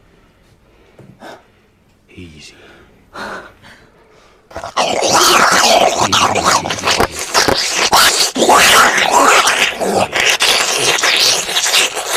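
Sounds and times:
speech: 0:02.2 - 0:03.5
exaggerated wet slurping sound effect: 0:04.5 - 0:12.1.

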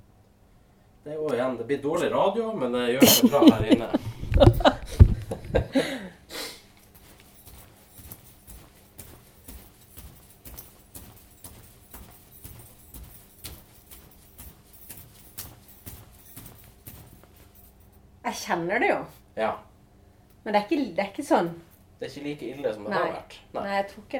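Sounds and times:
speech: 0:01.0 - 0:04.6, 0:18.5 - 0:19.7, 0:20.4 - 0:24.1
people laughing: 0:03.0 - 0:04.8
person jumping on the floor to stress-test a sore ankle: 0:03.6 - 0:05.2, 0:06.8 - 0:17.9.

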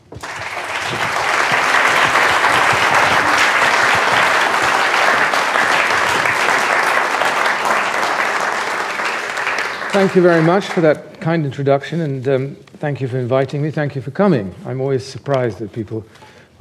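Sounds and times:
audience applause welcoming author Ian Buruma to a talk: 0:00.0 - 0:11.0
speech: 0:10.0 - 0:16.6.

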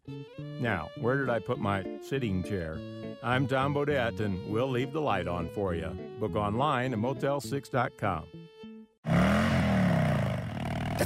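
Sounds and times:
speech: 0:00.6 - 0:08.4
2016 Rogue Glide Special motorcycle engine revving: 0:09.0 - 0:11.0.

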